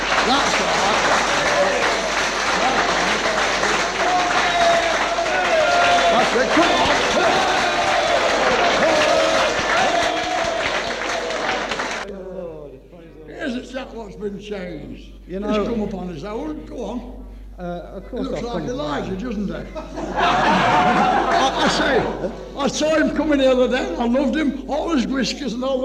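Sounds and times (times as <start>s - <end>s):
laughter: 0.0s - 12.0s, 17.9s - 23.1s
audience clapping: 0.0s - 12.1s, 20.2s - 22.1s
speech: 0.2s - 0.8s, 14.3s - 25.8s.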